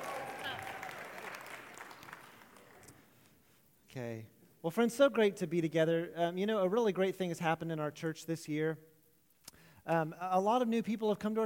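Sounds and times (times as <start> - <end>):
church audience applause: 0.0 - 3.1
speech: 3.9 - 8.9, 9.8 - 11.4.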